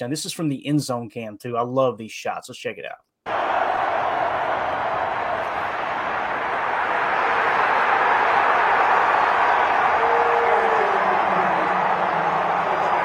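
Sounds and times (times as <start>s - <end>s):
speech: 0.0s - 3.6s
stadium crowd cheering after touchdown: 3.3s - 13.0s.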